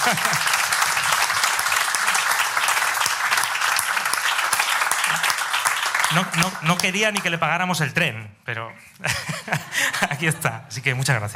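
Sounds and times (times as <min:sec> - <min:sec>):
laughter: 0:00.0 - 0:01.3, 0:08.9 - 0:10.4
audience applause: 0:00.0 - 0:07.5
speech: 0:00.1 - 0:00.5, 0:06.1 - 0:11.3.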